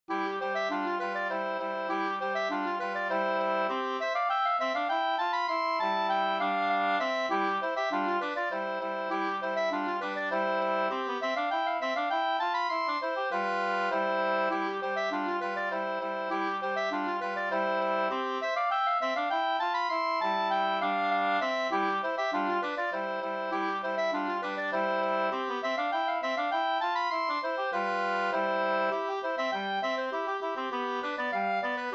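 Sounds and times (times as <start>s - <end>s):
two-part polska dance tune: 0.1s - 31.9s.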